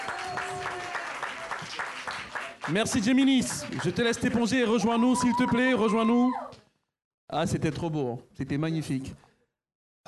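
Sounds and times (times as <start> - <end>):
audience applause: 0.0 - 5.4
speech: 2.7 - 6.4, 7.3 - 9.2.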